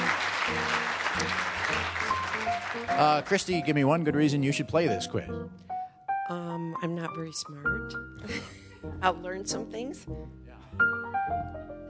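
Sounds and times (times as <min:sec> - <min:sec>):
audience applause: 0:00.0 - 0:04.0
speech: 0:02.8 - 0:05.7, 0:06.3 - 0:11.0.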